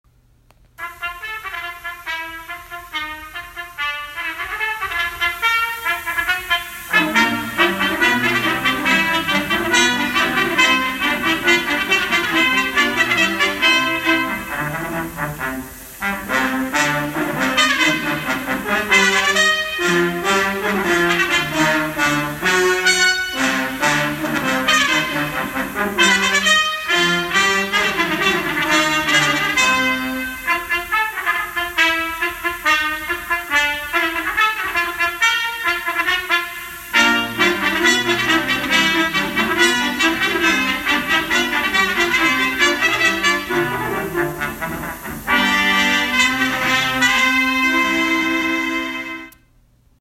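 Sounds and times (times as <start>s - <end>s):
high school trumpet solo: 0.8s - 49.5s.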